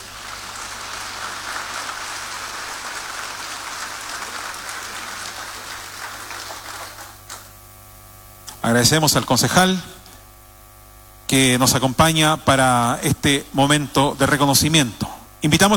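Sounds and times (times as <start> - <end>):
audience applause: 0.0 - 7.6
speech: 8.7 - 10.0, 11.3 - 15.7.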